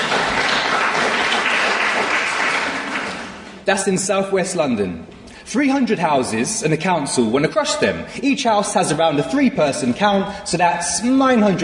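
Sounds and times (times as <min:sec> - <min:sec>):
audience applause: 0:00.0 - 0:03.5
speech: 0:03.7 - 0:11.6.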